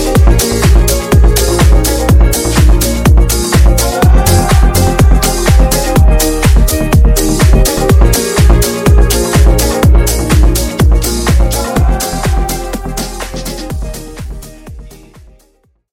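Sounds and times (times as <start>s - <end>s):
clean remix music: 0.0s - 15.6s.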